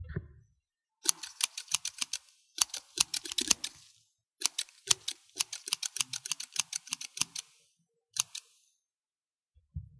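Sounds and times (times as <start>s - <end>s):
scissors: 1.1s - 7.5s, 8.2s - 8.6s.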